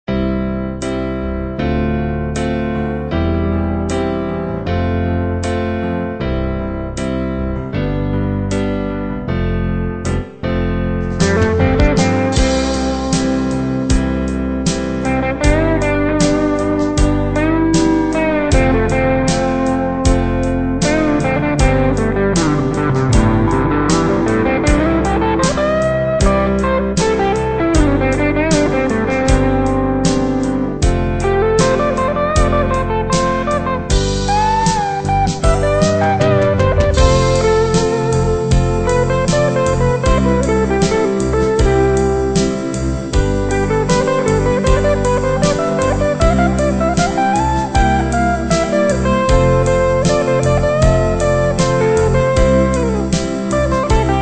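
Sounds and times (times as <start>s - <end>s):
guitar: 0.0s - 54.2s.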